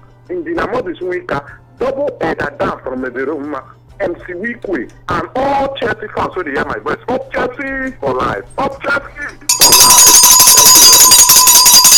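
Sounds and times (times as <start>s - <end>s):
speech: 0.3s - 9.4s
electric alarm bell ringing: 9.5s - 11.9s.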